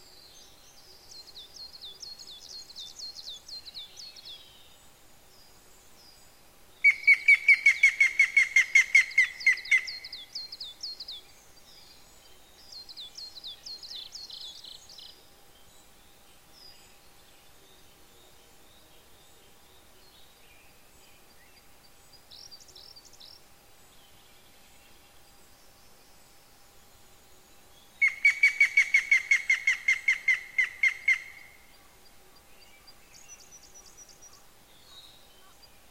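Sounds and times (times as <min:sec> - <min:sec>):
yamagera bird calling: 0:06.8 - 0:10.1, 0:28.0 - 0:32.0.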